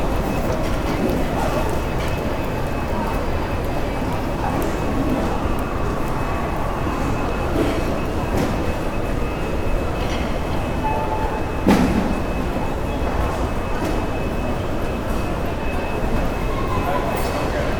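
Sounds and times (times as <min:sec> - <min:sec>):
urban airport interior security checkpoint ambience: 0:00.0 - 0:17.7.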